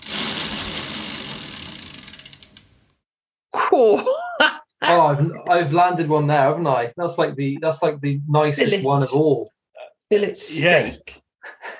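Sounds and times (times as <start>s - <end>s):
ingredient prize wheel spinning with ratcheting clatter: 0.0s - 2.8s
speech: 3.7s - 11.7s.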